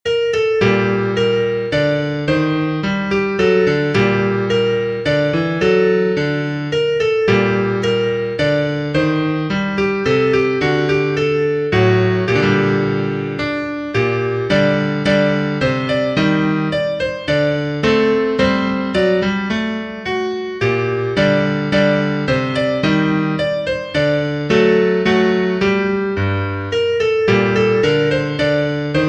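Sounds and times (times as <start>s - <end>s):
piano minuet: 0.0s - 29.0s.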